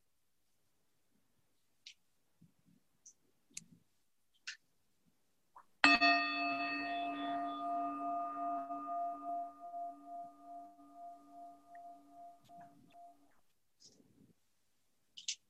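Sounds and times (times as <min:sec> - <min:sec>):
meditation bell struck with low tone and bright overtones: 0:05.8 - 0:13.3.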